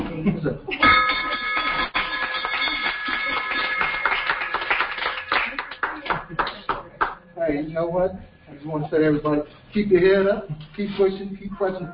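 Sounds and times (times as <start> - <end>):
speech: 0.2 - 0.9, 7.5 - 11.9
bell ringing: 0.8 - 5.6
crowd applauding: 1.9 - 7.2.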